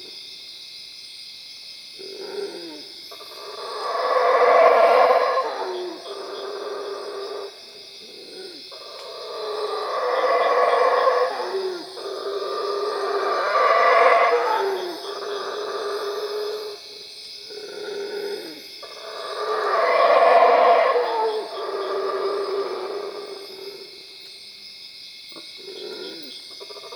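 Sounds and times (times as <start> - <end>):
howler monkey howling at Cuevas: 2.0 - 16.8, 17.6 - 23.4.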